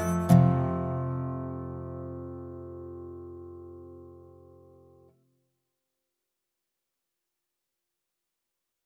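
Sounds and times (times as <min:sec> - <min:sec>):
country dobro: 0:00.0 - 0:04.5.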